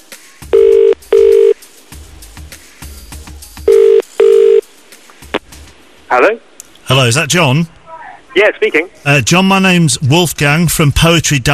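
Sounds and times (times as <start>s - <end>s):
telephone ringing tone: 0.6s - 1.6s, 3.7s - 4.6s
speech: 6.1s - 7.8s, 8.4s - 11.5s.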